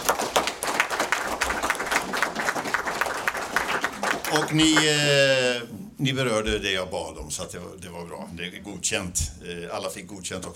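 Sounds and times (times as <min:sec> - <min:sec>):
audience applause: 0:00.0 - 0:05.2
speech: 0:04.3 - 0:10.5.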